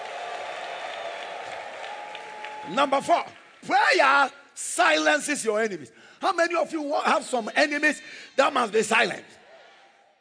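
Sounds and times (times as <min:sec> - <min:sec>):
audience applauding: 0:00.0 - 0:03.7
speech: 0:02.6 - 0:09.4.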